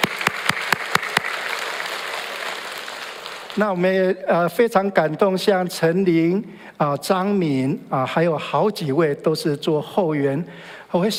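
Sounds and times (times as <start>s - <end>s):
audience applause: 0.0s - 3.8s
speech: 3.6s - 11.1s.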